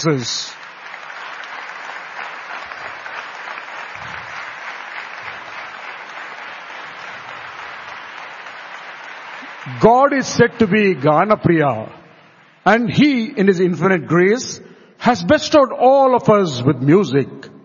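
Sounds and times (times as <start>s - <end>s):
speech: 0.0s - 0.6s, 9.7s - 12.0s, 12.6s - 17.5s
applause: 0.0s - 13.4s.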